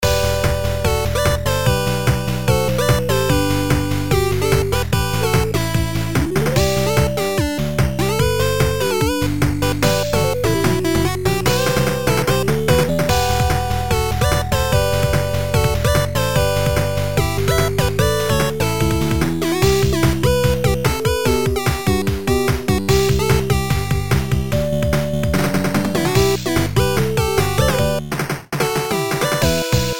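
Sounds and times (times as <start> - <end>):
8-bit music: 0.0 - 29.9.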